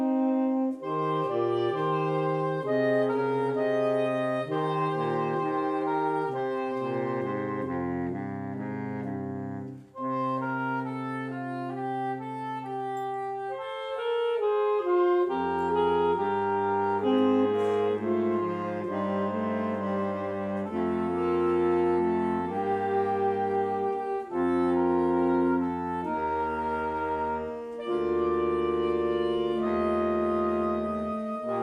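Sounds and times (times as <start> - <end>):
saxophone quartet playing: 0.0 - 31.6.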